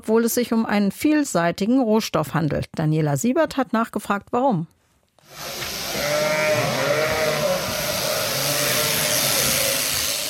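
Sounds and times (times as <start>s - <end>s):
speech: 0.0s - 5.6s
steady mechanical hum: 5.2s - 10.2s
flock of sheep bleating: 5.4s - 10.2s.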